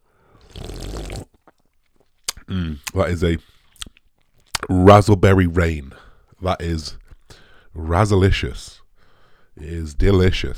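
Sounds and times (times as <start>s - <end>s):
person slurping a drink: 0.4s - 1.6s
speech: 2.5s - 3.5s, 4.7s - 8.8s, 9.6s - 10.5s.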